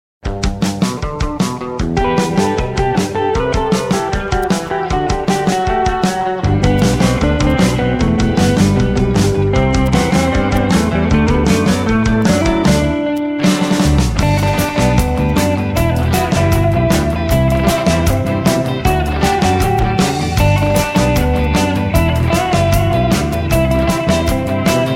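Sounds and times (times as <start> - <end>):
guitar: 0.2 - 24.9.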